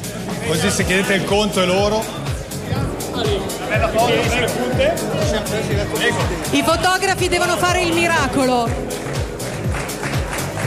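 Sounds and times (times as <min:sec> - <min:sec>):
speech: 0:00.5 - 0:09.1
audience applause: 0:08.7 - 0:10.6.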